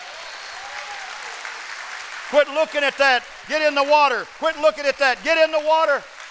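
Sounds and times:
audience clapping hands: 0:00.0 - 0:06.2
speech: 0:02.3 - 0:06.1.

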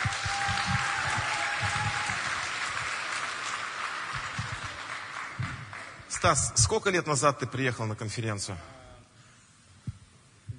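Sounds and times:
audience applause: 0:00.0 - 0:06.2
speech: 0:06.2 - 0:08.8.

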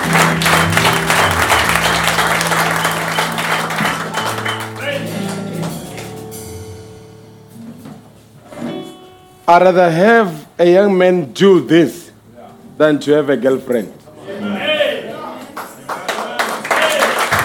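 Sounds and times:
audience applause: 0:00.0 - 0:06.2, 0:15.4 - 0:17.4
speech: 0:09.5 - 0:12.0, 0:12.8 - 0:14.5.

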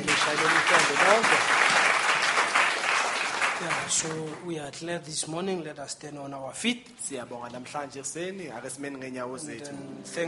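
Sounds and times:
audience applauding: 0:00.0 - 0:04.4
speech: 0:01.0 - 0:01.6, 0:03.9 - 0:10.2.

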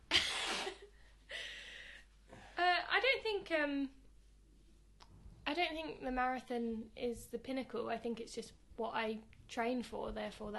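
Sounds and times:
person blowing their nose: 0:00.1 - 0:00.9
speech: 0:03.5 - 0:04.0, 0:05.6 - 0:10.5.

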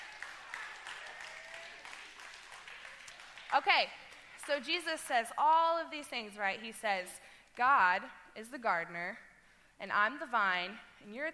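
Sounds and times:
brief audience clapping: 0:00.0 - 0:04.7
speech: 0:03.5 - 0:09.2, 0:09.8 - 0:11.3.

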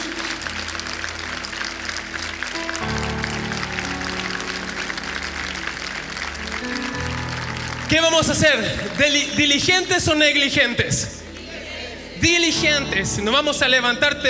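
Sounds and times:
audience applauding: 0:00.0 - 0:10.1
speech: 0:07.9 - 0:11.2, 0:12.2 - 0:14.2.

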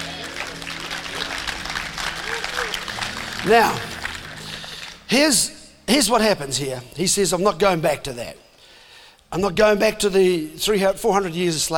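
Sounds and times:
audience clapping: 0:00.0 - 0:05.6
speech: 0:03.4 - 0:03.9, 0:05.1 - 0:08.4, 0:09.3 - 0:11.7.

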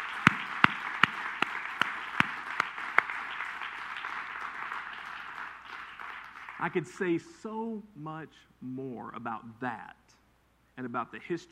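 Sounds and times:
audience applauding: 0:00.0 - 0:06.9
speech: 0:06.6 - 0:10.1, 0:10.8 - 0:11.4.

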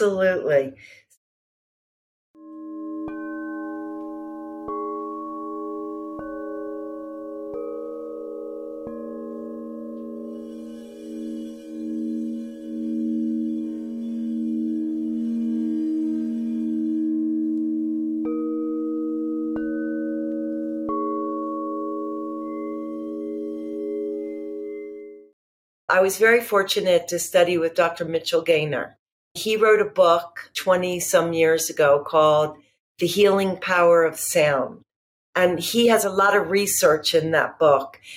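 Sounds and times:
speech: 0:00.0 - 0:01.0, 0:26.0 - 0:34.8, 0:35.4 - 0:38.1
singing bowls played by a sound healer: 0:02.4 - 0:25.1.

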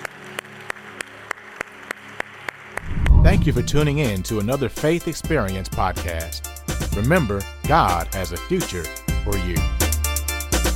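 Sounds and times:
round of applause: 0:00.0 - 0:02.8
speech: 0:03.3 - 0:09.7.

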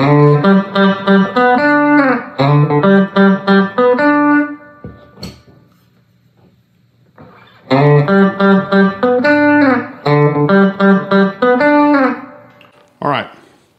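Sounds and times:
electric guitar melodic line: 0:00.0 - 0:05.3, 0:07.2 - 0:12.8.

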